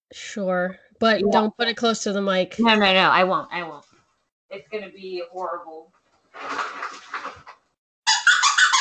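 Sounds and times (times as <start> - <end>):
speech: 0.1 - 3.9, 4.5 - 7.5
dog's squeaky toy squeaking: 8.1 - 8.7.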